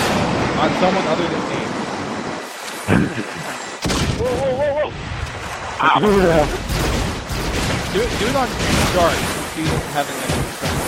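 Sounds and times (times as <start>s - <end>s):
speech: 0.6s - 1.8s, 2.9s - 5.0s, 5.8s - 7.0s, 7.9s - 10.8s
video game grenade launcher fire: 6.4s - 10.8s.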